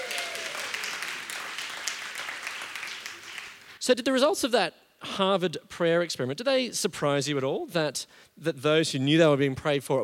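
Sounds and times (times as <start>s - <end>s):
audience applause: 0.0s - 3.8s
speech: 3.8s - 10.0s.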